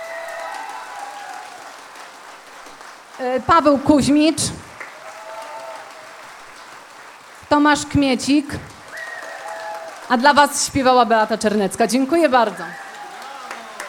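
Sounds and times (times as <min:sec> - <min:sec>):
audience applause after band introductions: 0:00.0 - 0:11.4, 0:12.2 - 0:13.8
speech: 0:03.2 - 0:04.7, 0:07.5 - 0:08.7, 0:10.1 - 0:12.8.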